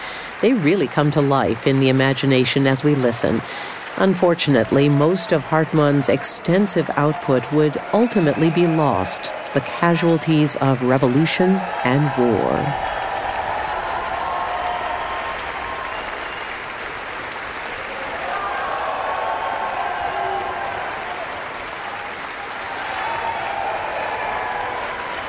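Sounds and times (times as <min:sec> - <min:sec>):
concert audience clapping: 0:00.0 - 0:25.2
speech: 0:00.4 - 0:12.9
concert audience cheers and shouts: 0:04.4 - 0:17.0, 0:17.6 - 0:25.2.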